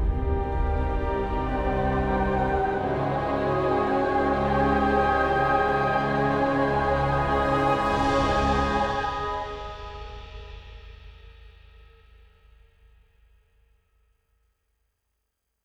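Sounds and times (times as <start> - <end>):
cursed forest music: 0.0 - 10.6.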